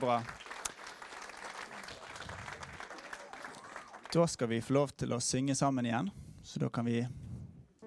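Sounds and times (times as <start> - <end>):
speech: 0.0 - 0.4, 4.1 - 7.2
audience applause: 0.0 - 4.4.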